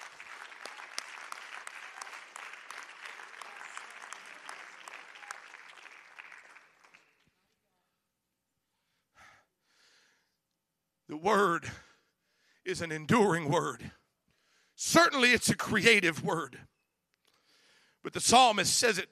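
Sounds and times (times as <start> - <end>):
crowd applause: 0.0 - 7.4
speech: 11.1 - 11.8, 12.7 - 14.0, 14.8 - 16.7, 18.1 - 19.1.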